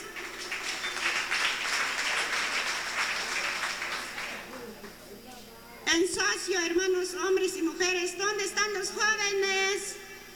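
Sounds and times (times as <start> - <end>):
audience applause: 0.0 - 4.9
speech: 6.5 - 10.0.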